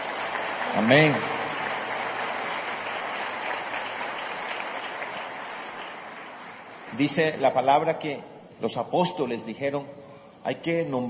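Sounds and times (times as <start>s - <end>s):
audience applause: 0.0s - 7.2s
speech: 0.7s - 1.4s, 7.0s - 11.0s.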